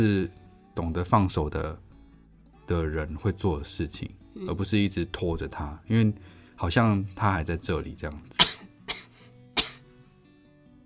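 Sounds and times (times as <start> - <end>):
speech: 0.0 - 1.8, 2.7 - 8.5
coughing: 8.3 - 9.9.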